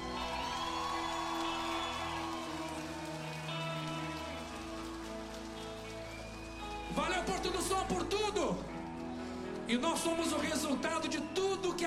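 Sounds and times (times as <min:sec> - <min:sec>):
scattered cheers: 0:00.0 - 0:09.2
audience applause: 0:00.0 - 0:09.4
speech: 0:09.7 - 0:11.8.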